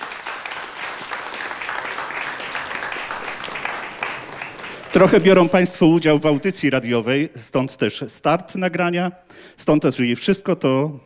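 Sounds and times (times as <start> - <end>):
audience applause: 0.0 - 6.6
speech: 4.9 - 11.0.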